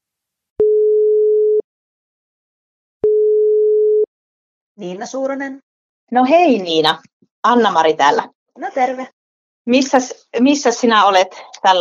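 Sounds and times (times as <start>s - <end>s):
telephone call tone beeps while dialling: 0.6s - 1.6s, 3.0s - 4.1s
speech: 4.8s - 11.7s.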